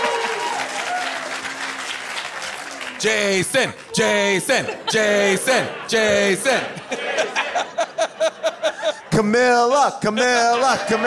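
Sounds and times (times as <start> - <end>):
audience applause: 0.0 - 7.7
speech: 3.0 - 7.7, 9.2 - 11.0
laughter: 3.0 - 11.0.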